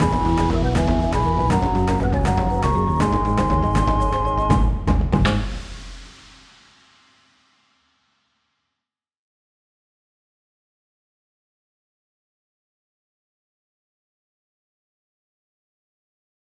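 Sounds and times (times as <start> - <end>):
level win jingle: 0.0 - 4.8.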